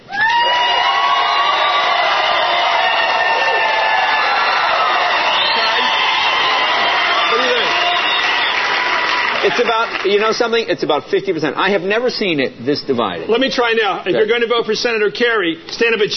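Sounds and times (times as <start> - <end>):
large audience standing up and cheering: 0.0 - 10.3
speech: 9.6 - 16.1.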